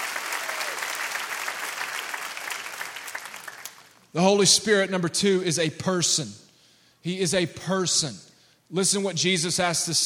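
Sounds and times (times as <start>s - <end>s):
audience clapping hands: 0.0s - 4.1s
speech: 4.1s - 6.4s, 7.0s - 10.0s.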